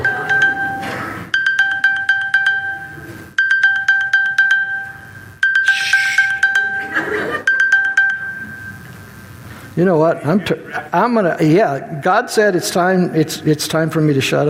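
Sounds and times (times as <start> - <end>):
mobile phone ringtone: 0.0 - 9.0
people laughing: 6.6 - 7.6, 10.0 - 11.1
speech: 9.8 - 14.4.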